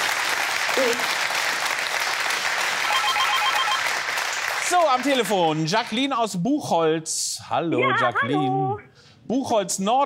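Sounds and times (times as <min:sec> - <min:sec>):
applause: 0:00.0 - 0:06.1
speech: 0:00.8 - 0:01.2, 0:04.7 - 0:10.0.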